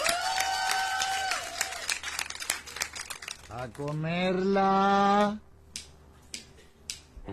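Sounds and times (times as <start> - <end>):
applause from a group: 0.0 - 4.1
speech: 3.6 - 5.5.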